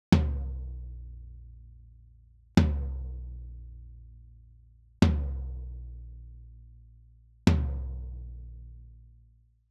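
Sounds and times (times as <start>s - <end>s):
tom drum: 0.1s - 0.8s, 2.6s - 3.2s, 5.0s - 5.6s, 7.5s - 8.2s.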